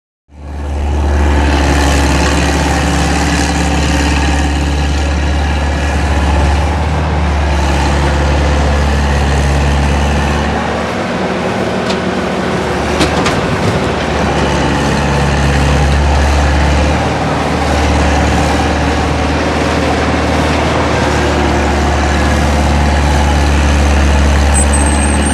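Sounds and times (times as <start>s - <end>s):
mechanical diggers working at a demolition site: 0.3s - 25.3s.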